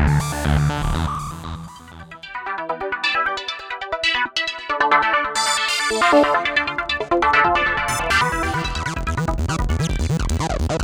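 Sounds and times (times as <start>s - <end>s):
arpeggio: 0.2s - 10.7s.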